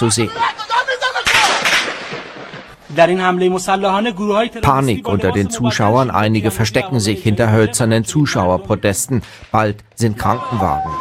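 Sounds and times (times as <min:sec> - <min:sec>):
speech: 0:00.0 - 0:00.8, 0:02.9 - 0:10.9
gunfire at a military parade: 0:01.2 - 0:02.9.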